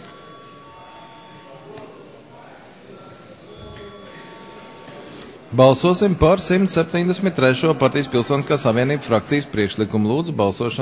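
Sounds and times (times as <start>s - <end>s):
parliament chamber bell ringing: 0.0s - 2.1s, 2.8s - 5.4s
speech: 5.5s - 10.8s.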